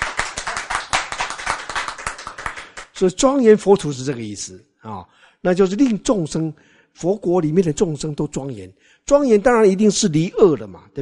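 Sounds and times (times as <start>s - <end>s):
audience clapping hands: 0.0s - 3.0s
speech: 3.0s - 10.9s.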